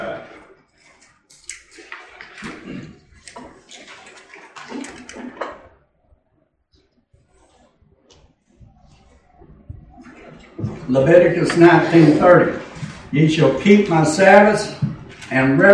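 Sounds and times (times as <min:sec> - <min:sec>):
water pouring: 0:00.0 - 0:05.8, 0:09.9 - 0:15.7
speech: 0:10.9 - 0:15.7.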